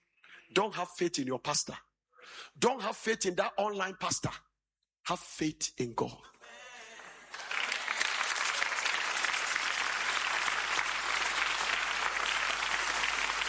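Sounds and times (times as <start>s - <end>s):
speech: 0.5s - 4.4s, 5.1s - 6.3s
audience clapping: 6.9s - 13.4s.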